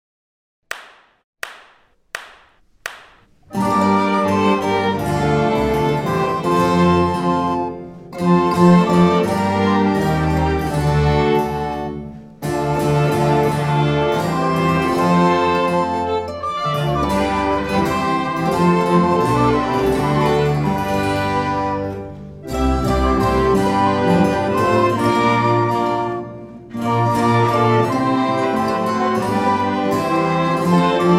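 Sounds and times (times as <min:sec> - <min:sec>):
orchestra: 0:03.6 - 0:31.1.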